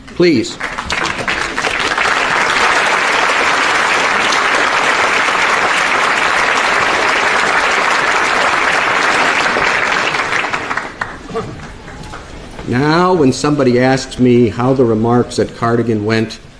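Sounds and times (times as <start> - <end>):
crowd applause: 0.0 - 13.2
speech: 0.2 - 0.7, 12.7 - 16.4.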